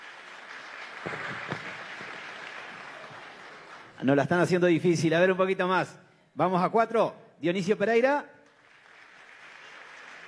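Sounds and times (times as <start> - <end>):
audience applause: 0.0 - 4.0, 8.5 - 10.2
speech: 4.0 - 8.3.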